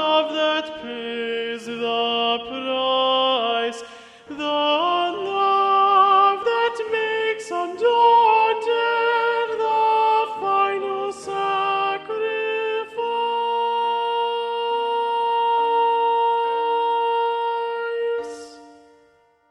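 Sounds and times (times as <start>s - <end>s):
predominant alto voice: 0.0s - 19.3s.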